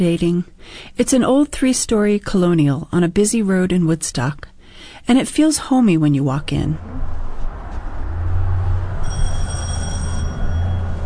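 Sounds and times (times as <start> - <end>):
speech: 0.0 - 7.1
loud entryway bell ringing: 9.0 - 11.0.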